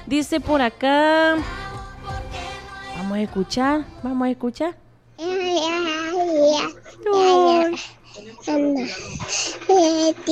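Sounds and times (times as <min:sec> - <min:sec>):
speech: 0:00.1 - 0:01.6, 0:03.0 - 0:04.8, 0:06.6 - 0:10.3
baby babbling in a recorded voice message: 0:05.2 - 0:10.3.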